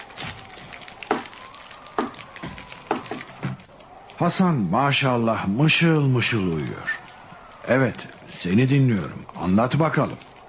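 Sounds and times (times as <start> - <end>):
wood logs thrown onto fire: 0.0 - 3.8
fire crackling: 0.0 - 10.4
speech: 4.2 - 7.0, 7.7 - 10.3.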